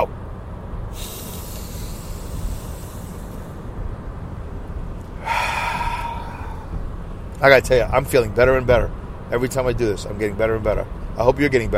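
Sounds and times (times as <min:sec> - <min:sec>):
deep breaths: 0:00.9 - 0:03.8, 0:05.0 - 0:07.3
speech: 0:07.4 - 0:11.7.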